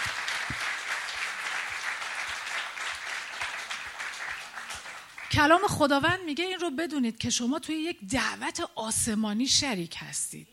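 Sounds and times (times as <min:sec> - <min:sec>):
church congregation applauding: 0:00.0 - 0:05.6
speech: 0:05.3 - 0:10.5.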